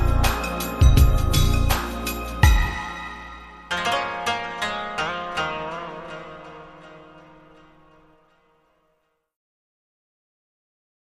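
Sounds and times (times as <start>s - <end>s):
koto ground beat: 0.0s - 7.6s.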